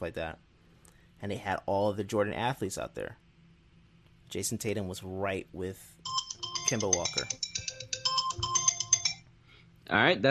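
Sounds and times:
speech: 0:00.0 - 0:00.5, 0:01.2 - 0:03.2, 0:04.3 - 0:07.6, 0:09.9 - 0:10.2
alarm timer ringing: 0:06.0 - 0:09.3.

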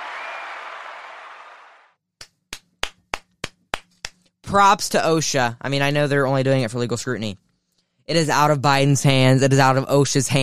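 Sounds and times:
soundboard canned applause sound effect: 0:00.0 - 0:01.9
sharp single claps: 0:02.2 - 0:04.2
speech: 0:04.5 - 0:07.4, 0:08.1 - 0:10.4.

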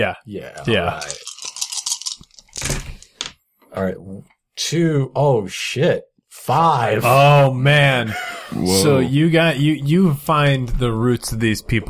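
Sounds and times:
speech: 0:00.0 - 0:01.3, 0:03.7 - 0:11.8
dice rattling in a hand or cup and clattering: 0:00.6 - 0:03.4.

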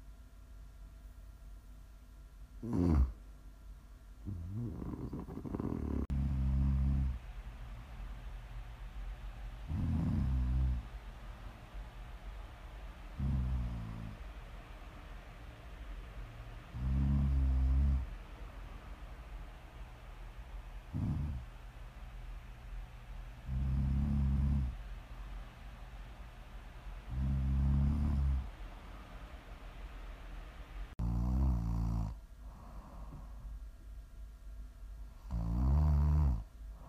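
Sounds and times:
steady faint hiss: 0:00.0 - 0:36.8
person snoring: 0:02.6 - 0:03.2, 0:04.2 - 0:07.2, 0:09.7 - 0:10.9, 0:13.2 - 0:14.2, 0:16.7 - 0:18.1, 0:20.9 - 0:21.4, 0:23.4 - 0:24.8, 0:27.1 - 0:28.5, 0:31.0 - 0:33.3, 0:35.3 - 0:36.8.

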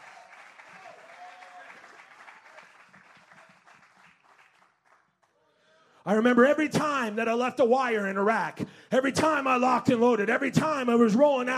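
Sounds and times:
audience clapping hands in praise: 0:00.0 - 0:05.4
speech: 0:06.0 - 0:11.5.

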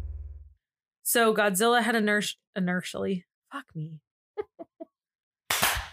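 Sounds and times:
speech: 0:01.1 - 0:04.5
group hand clap: 0:05.5 - 0:05.9.

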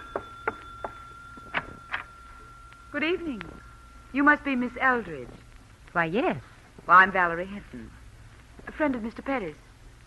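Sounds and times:
front door bell ringing: 0:00.0 - 0:05.0
steady high-pitched tone: 0:00.0 - 0:05.5
speech: 0:03.0 - 0:05.4, 0:06.0 - 0:08.0, 0:08.8 - 0:09.6.

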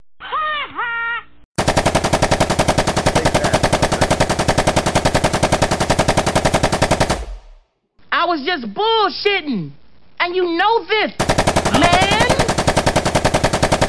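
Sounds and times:
machine gun fire: 0:01.6 - 0:07.7, 0:11.2 - 0:13.8
speech: 0:08.3 - 0:11.3.

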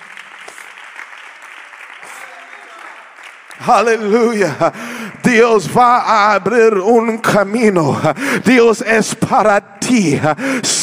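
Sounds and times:
audience applauding: 0:00.0 - 0:05.6
speech: 0:03.6 - 0:10.8.

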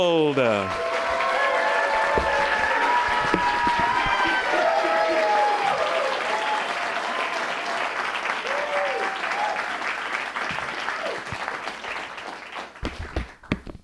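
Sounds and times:
audience applause: 0:00.0 - 0:13.6
whoops and cheers: 0:00.7 - 0:07.8, 0:08.4 - 0:09.8.

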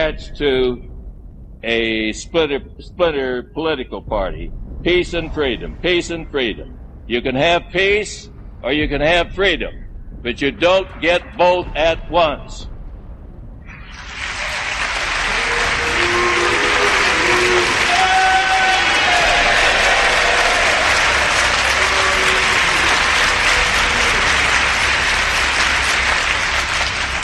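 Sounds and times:
speech: 0:00.1 - 0:00.9, 0:01.6 - 0:12.7
applause: 0:13.7 - 0:27.2
crowd booing: 0:14.0 - 0:27.2.

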